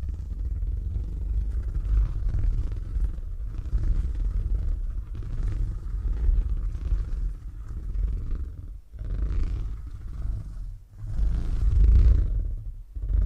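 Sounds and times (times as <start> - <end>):
cat purring: 0.0 - 13.2.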